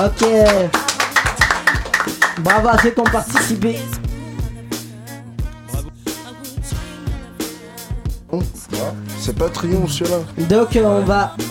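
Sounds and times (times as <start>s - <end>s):
speech: 0.0s - 0.8s, 2.4s - 4.0s, 8.3s - 11.4s
rhythmic clapping: 0.0s - 4.2s, 8.7s - 10.3s.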